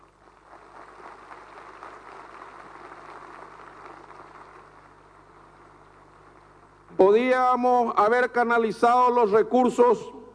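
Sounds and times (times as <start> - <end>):
long sustained crowd applause: 0.0 - 6.8
speech: 7.0 - 10.2.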